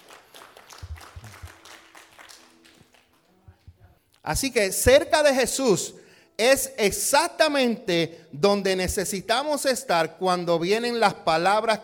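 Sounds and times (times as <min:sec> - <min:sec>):
crowd applause: 0:00.0 - 0:03.1
speech: 0:04.3 - 0:11.8.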